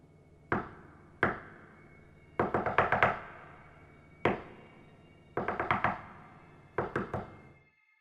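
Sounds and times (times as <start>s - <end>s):
loud tapping on a window: 0.5s - 1.5s, 2.4s - 3.4s, 4.3s - 4.5s, 5.4s - 6.2s, 6.8s - 7.4s.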